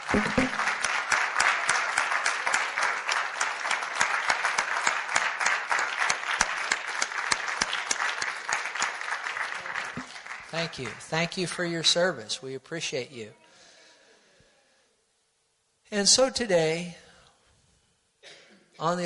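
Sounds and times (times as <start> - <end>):
sustained audience applause for veterans: 0.0 - 11.0
speech: 0.2 - 0.4, 10.6 - 13.4, 15.9 - 17.0, 18.8 - 19.0.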